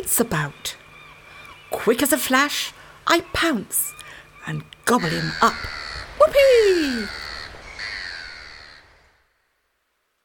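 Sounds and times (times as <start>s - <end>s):
speech: 0.0s - 0.8s, 1.7s - 7.2s
gull crying: 4.9s - 9.0s.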